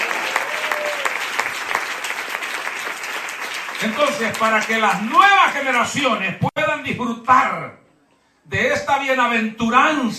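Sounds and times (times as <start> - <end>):
audience applause: 0.0 - 6.0
speech: 3.8 - 7.8, 8.5 - 10.1.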